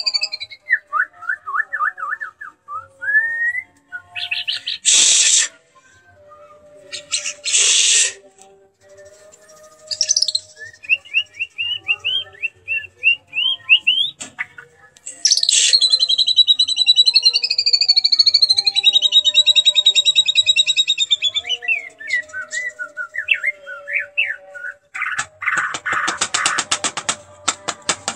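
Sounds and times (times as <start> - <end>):
lovebird chirping: 0.0 - 0.6, 9.4 - 14.2, 15.1 - 25.6
murai batu shama singing tembakan song: 0.0 - 28.1.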